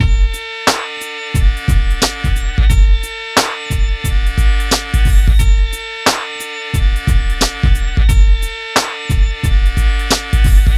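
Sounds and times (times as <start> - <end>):
hip hop and R&B drum loops mix: 0.0 - 10.7.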